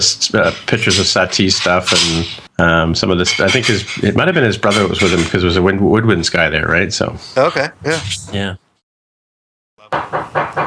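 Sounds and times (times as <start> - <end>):
speech: 0.0 - 8.6, 9.9 - 10.4
knocking on a door next door: 9.9 - 10.6.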